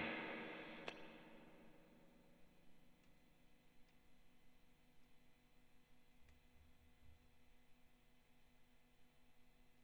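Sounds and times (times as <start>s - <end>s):
Fender Blues Tweed distorted amp tone with hall reverb: 0.0s - 1.5s.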